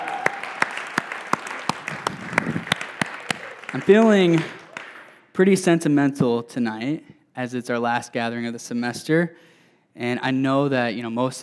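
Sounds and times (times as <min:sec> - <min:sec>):
crowd applauding: 0:00.0 - 0:05.3
speech: 0:03.7 - 0:04.6, 0:05.4 - 0:11.4.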